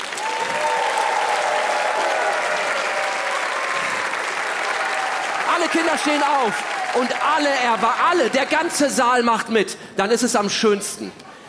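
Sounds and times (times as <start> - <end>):
faint cheering: 0.0 - 8.5
large audience applauding: 0.0 - 9.2
speech: 5.7 - 11.2.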